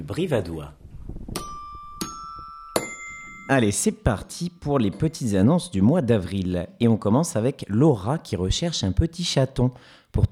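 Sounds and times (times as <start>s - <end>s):
speech: 0.0s - 0.8s, 3.5s - 10.3s
radio jingle chime: 1.4s - 3.8s.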